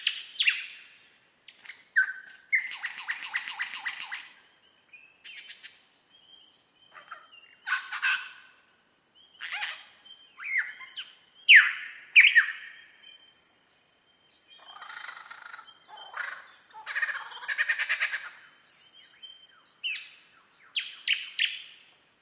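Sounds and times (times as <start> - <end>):
Superb lyrebird song: 0.0 - 8.4, 9.1 - 16.7, 17.3 - 21.9.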